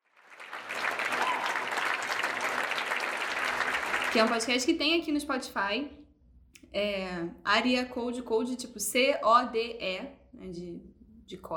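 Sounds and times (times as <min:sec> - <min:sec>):
crowd clapping: 0:00.0 - 0:04.6
speech: 0:04.1 - 0:06.0, 0:06.7 - 0:11.5.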